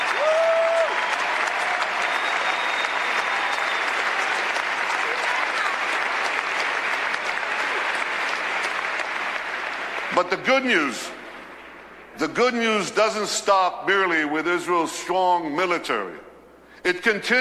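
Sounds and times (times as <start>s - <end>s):
crowd cheering and applauding: 0.0s - 10.4s
speech: 10.2s - 11.2s, 12.2s - 17.3s.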